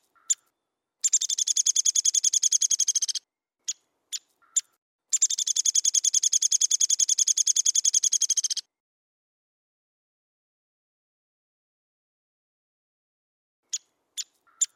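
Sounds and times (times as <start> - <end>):
downy woodpecker calls: 0.0 - 8.7, 13.7 - 14.7.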